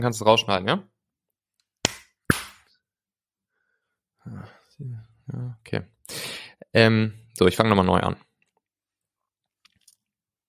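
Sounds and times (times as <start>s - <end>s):
speech: 0.0s - 0.9s, 4.3s - 8.3s
hand claps: 1.8s - 2.7s
murmured vocal sounds: 4.2s - 5.6s.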